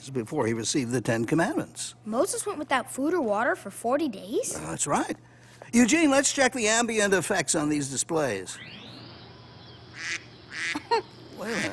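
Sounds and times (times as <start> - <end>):
speech: 0.0 - 8.9, 10.0 - 11.7
duck quacking on the Moses display: 9.9 - 11.7.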